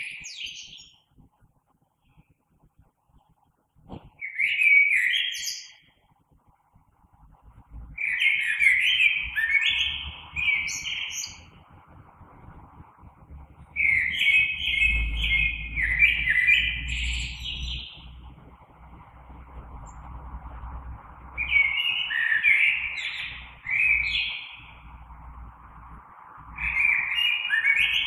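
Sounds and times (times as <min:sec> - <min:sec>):
Common blackbird song: 0:00.0 - 0:01.2, 0:03.2 - 0:06.2, 0:07.2 - 0:28.0
low thump: 0:03.8 - 0:04.2
low rumble: 0:06.7 - 0:08.1, 0:09.2 - 0:27.2.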